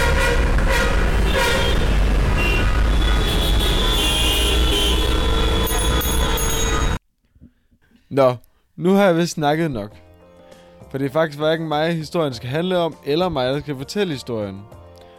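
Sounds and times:
car horns honking in a traffic jam: 0.0s - 7.0s
speech: 8.2s - 10.0s, 10.9s - 14.8s.

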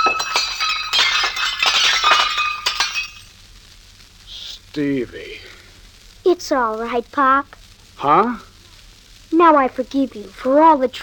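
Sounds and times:
dish breaking while drying dishes: 0.0s - 3.3s
shards clinking: 0.0s - 3.3s
speech: 4.8s - 5.4s, 6.3s - 8.5s, 9.3s - 11.0s.

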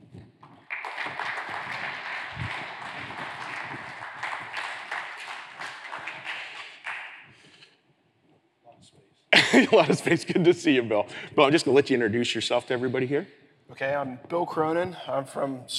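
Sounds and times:
audience applause: 0.6s - 7.3s
laughter: 9.4s - 10.8s
speech: 9.6s - 15.7s.

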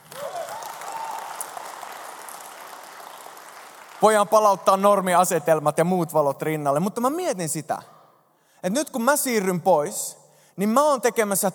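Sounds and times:
small applause: 0.0s - 4.8s
speech: 4.0s - 8.0s, 8.6s - 11.5s.

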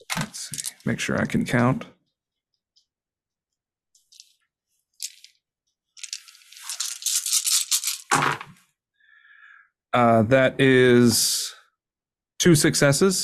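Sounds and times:
speech: 0.2s - 2.0s, 10.0s - 11.4s, 12.4s - 13.2s
dice rolling: 5.0s - 5.4s, 6.0s - 8.6s.

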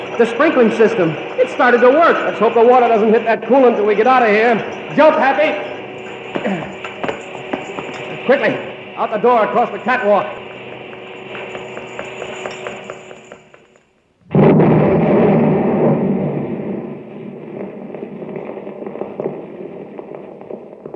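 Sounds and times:
three buildings blown to bits: 0.0s - 20.9s
speech: 0.2s - 5.7s, 6.4s - 6.7s, 8.3s - 10.4s.

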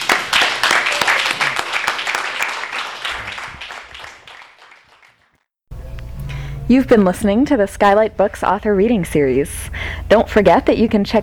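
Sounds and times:
crowd applause: 0.0s - 5.3s
speech: 6.7s - 11.2s.

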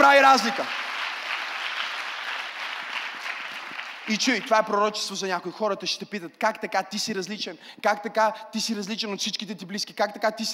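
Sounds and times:
speech: 0.0s - 0.9s, 4.1s - 10.5s
audience applause: 0.0s - 4.8s.

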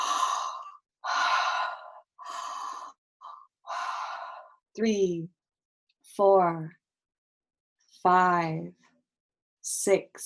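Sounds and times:
person breathing deeply: 0.0s - 4.6s
speech: 4.8s - 5.4s, 6.2s - 6.8s, 8.0s - 8.8s, 9.7s - 10.2s.

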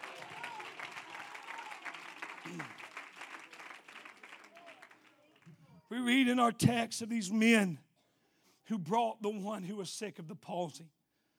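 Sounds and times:
audience clapping: 0.0s - 5.5s
speech: 2.5s - 2.8s, 5.9s - 7.8s, 8.7s - 11.0s.

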